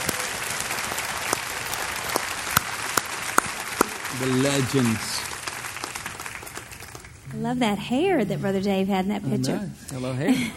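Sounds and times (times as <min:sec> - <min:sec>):
audience clapping: 0:00.0 - 0:07.6
speech: 0:04.2 - 0:05.2, 0:07.4 - 0:10.5.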